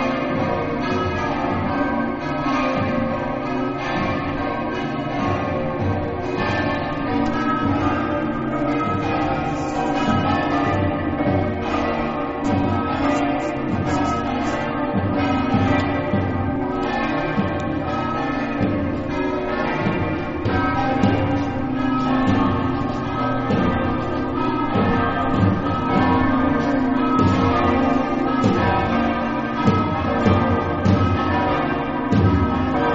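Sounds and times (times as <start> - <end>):
bells ringing in Pordenone: 0.0 - 32.9.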